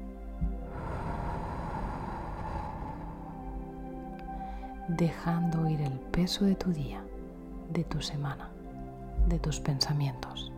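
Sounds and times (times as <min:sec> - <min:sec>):
sustained tonal music: 0:00.0 - 0:10.5
slow breath in through the nose during a guided relaxation exercise: 0:00.6 - 0:04.8
speech: 0:04.9 - 0:07.1, 0:07.7 - 0:08.6, 0:09.2 - 0:10.5.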